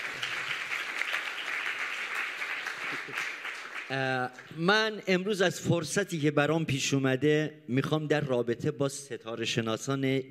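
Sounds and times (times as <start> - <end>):
audience clapping for two birthdays: 0.0 - 4.6
speech: 3.1 - 10.3.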